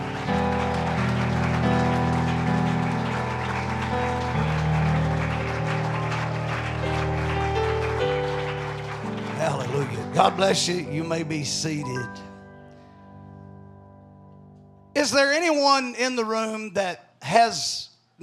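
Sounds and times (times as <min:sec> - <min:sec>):
audience hand clapping: 0:00.0 - 0:11.5
speech: 0:10.2 - 0:12.3, 0:15.1 - 0:18.2.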